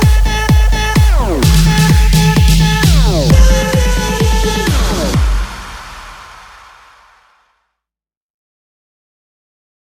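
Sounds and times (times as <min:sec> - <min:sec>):
electronic dance music: 0:00.0 - 0:07.5.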